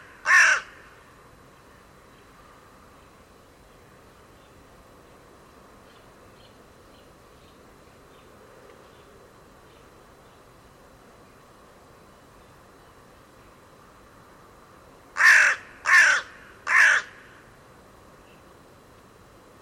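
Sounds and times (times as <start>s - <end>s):
bird giving harsh crow-like caws: 0.0s - 1.0s, 15.2s - 17.4s.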